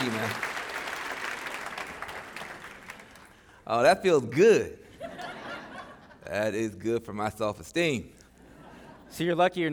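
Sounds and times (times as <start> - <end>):
audience applause at a Commonwealth Club event in Silicon Valley: 0.0 - 3.3
speech: 3.7 - 4.8, 6.3 - 8.2, 9.1 - 9.7
laughter: 4.8 - 6.5, 8.4 - 9.4.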